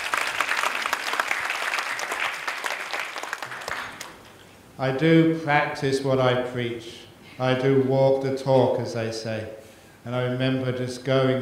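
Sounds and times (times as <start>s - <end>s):
audience round of applause: 0.0s - 4.2s
speech: 4.8s - 11.4s.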